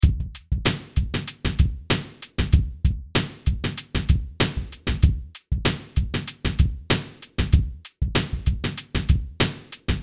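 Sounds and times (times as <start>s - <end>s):
music beat: 0.0s - 10.0s.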